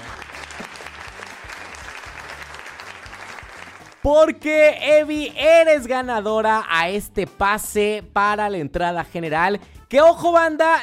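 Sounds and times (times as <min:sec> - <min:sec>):
applause: 0:00.0 - 0:04.8
speech: 0:04.0 - 0:10.8.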